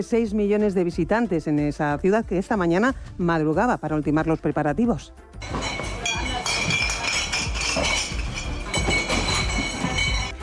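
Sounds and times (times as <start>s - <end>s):
speech: 0.0s - 5.8s
glass beer bottles clinking inside bar counters at Oktoberfest in Munich: 5.4s - 10.4s.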